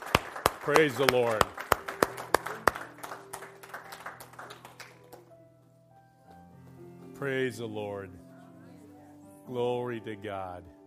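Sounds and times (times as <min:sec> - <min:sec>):
audience applauding and clapping: 0:00.0 - 0:05.4
speech: 0:00.7 - 0:01.6, 0:07.2 - 0:08.2, 0:09.5 - 0:10.8.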